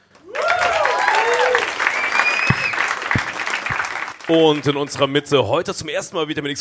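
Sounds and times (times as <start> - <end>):
audience applause: 0.2 - 5.2
speech: 4.3 - 6.5.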